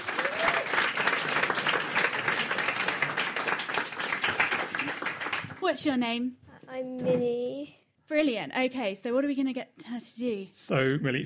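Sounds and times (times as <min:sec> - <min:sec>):
audience applause for a volunteer: 0:00.0 - 0:05.6
speech: 0:05.7 - 0:11.2.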